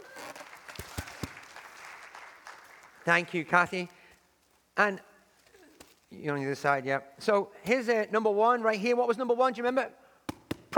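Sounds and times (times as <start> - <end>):
audience at a church service clapping: 0.0 - 3.5
speech: 3.1 - 4.0, 4.8 - 5.1, 6.1 - 10.0.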